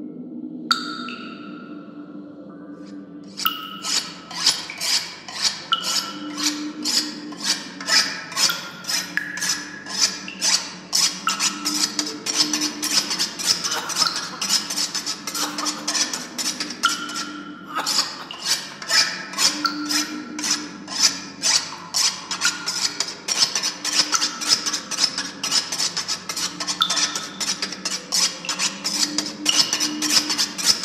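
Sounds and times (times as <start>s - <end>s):
torture chamber halloween horror scary sounds: 0.0s - 22.8s
halloween horror music: 0.0s - 30.8s.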